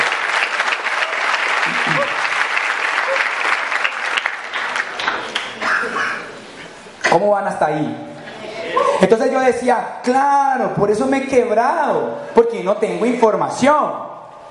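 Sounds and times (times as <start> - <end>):
crowd applauding: 0.0 - 6.2
speech: 7.1 - 8.1, 8.7 - 14.1.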